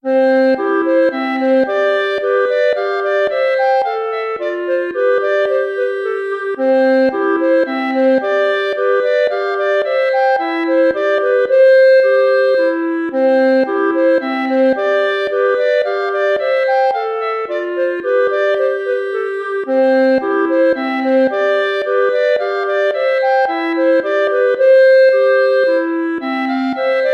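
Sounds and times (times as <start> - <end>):
minuet: 0.0 - 27.1.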